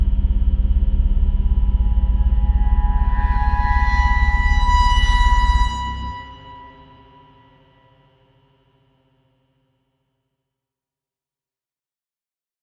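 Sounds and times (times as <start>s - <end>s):
scary music: 0.0s - 7.4s.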